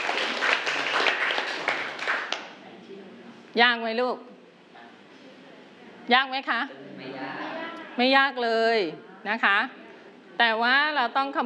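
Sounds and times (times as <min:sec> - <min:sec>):
small group clapping: 0:00.0 - 0:02.6
speech: 0:03.6 - 0:04.3, 0:06.1 - 0:07.2, 0:08.0 - 0:09.8, 0:10.4 - 0:11.4.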